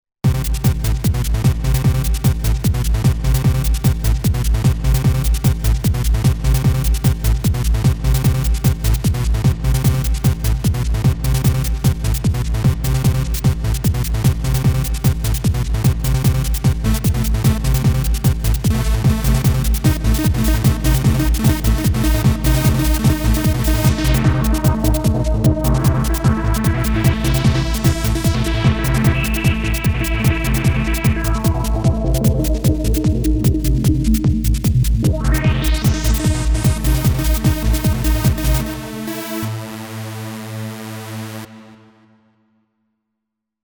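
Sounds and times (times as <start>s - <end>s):
hardstyle music: 0.2s - 42.1s.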